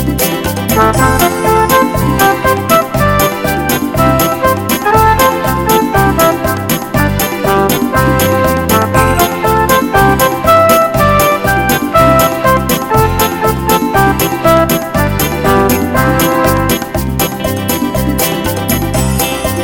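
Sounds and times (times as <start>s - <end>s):
happy smooth polka music: 0.0s - 19.6s.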